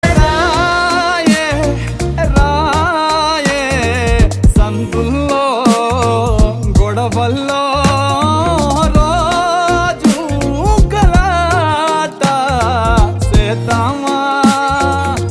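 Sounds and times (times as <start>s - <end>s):
background music ringtone: 0.0s - 15.3s.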